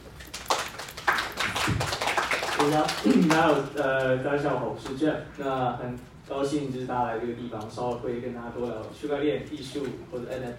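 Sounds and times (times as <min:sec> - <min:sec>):
audience applause: 0:00.3 - 0:03.6
speech: 0:02.6 - 0:10.5.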